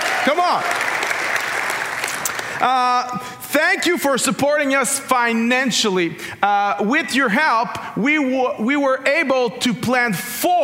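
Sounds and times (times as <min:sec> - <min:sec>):
crowd clapping: 0:00.0 - 0:03.1
speech: 0:00.2 - 0:00.8, 0:02.6 - 0:10.6.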